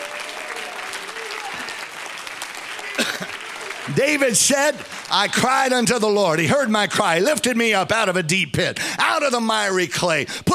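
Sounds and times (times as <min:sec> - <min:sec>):
audience clapping hands: 0:00.0 - 0:06.7
speech: 0:03.9 - 0:10.5.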